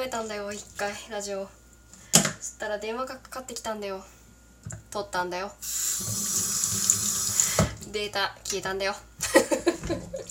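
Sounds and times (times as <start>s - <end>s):
speech: 0.0s - 7.0s, 7.9s - 10.2s
running tap water: 5.6s - 7.9s
laughter: 9.2s - 10.2s.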